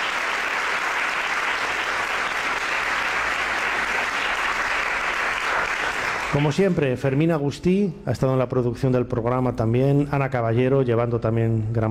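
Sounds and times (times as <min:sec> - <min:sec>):
audience applause: 0:00.0 - 0:06.8
speech: 0:06.3 - 0:11.8.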